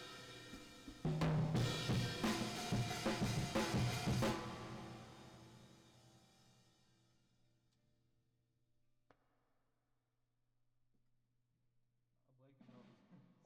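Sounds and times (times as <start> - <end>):
drums with reverb: 0.0 - 6.8.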